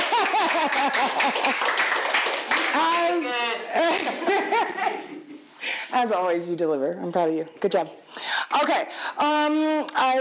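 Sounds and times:
laughter: 0.0s - 1.7s, 3.7s - 5.4s
round of applause: 0.0s - 3.2s
speech: 0.6s - 1.8s, 5.9s - 10.1s.

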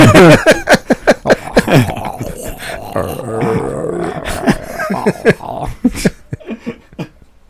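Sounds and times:
laughter: 0.0s - 7.2s
person burping: 1.3s - 5.9s.

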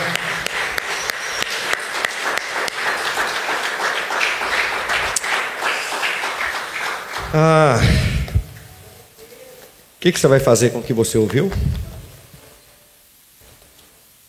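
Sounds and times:
audience applause: 0.0s - 8.5s
speech: 7.3s - 8.1s, 10.0s - 11.8s.

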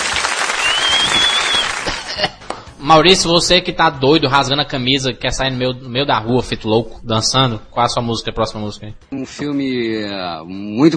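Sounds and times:
applause for a performer: 0.0s - 2.7s
high sustained whistle: 0.5s - 1.9s
speech: 2.2s - 10.9s.

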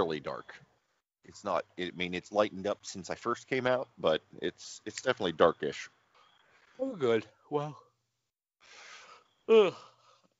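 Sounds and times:
speech: 0.0s - 0.6s, 1.2s - 6.0s, 6.8s - 7.8s, 9.5s - 9.9s
person yawning: 9.5s - 10.0s.

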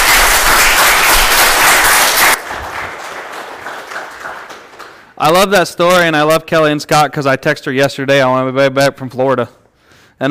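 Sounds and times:
audience applause: 0.0s - 5.1s
speech: 5.2s - 9.6s.

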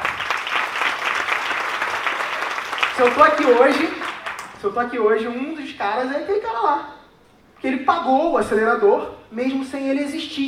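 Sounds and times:
audience clapping: 0.0s - 4.6s
speech: 3.0s - 4.0s, 4.6s - 6.9s, 7.6s - 10.4s.

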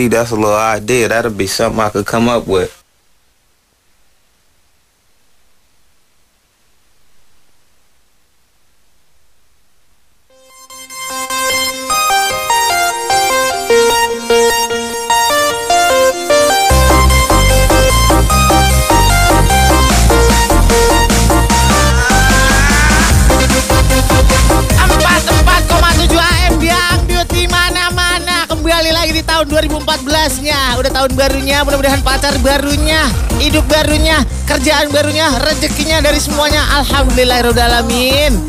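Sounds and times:
speech: 0.0s - 2.8s, 37.2s - 38.4s
dangdut song playing: 10.3s - 38.4s.

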